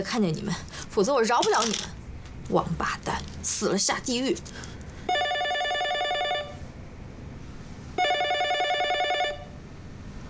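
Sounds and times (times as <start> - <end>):
speech: 0.0 - 5.2
telephone ringing: 5.1 - 6.6, 8.0 - 9.6.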